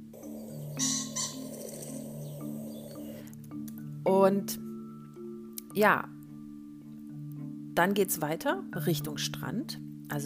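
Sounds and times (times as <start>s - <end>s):
pheasants calling: 0.1s - 3.3s
speech: 4.2s - 4.7s, 5.8s - 6.2s, 7.8s - 10.2s.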